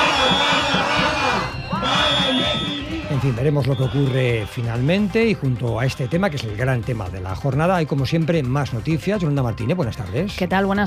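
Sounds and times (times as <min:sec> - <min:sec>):
protesting teachers shouting and chanting outside government building: 0:00.0 - 0:06.7
speech: 0:03.2 - 0:10.8.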